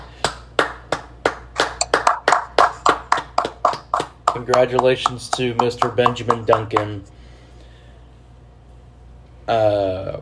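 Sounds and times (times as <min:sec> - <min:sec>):
round of applause: 0:00.2 - 0:05.1
speech: 0:04.4 - 0:07.2, 0:09.5 - 0:10.2.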